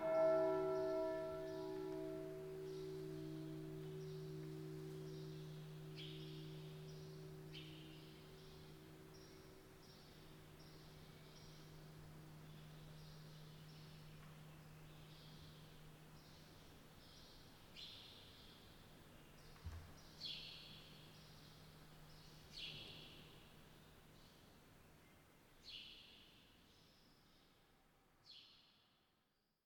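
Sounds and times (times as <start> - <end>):
low hum: 0.0 - 17.1
bird chirping: 0.0 - 23.4.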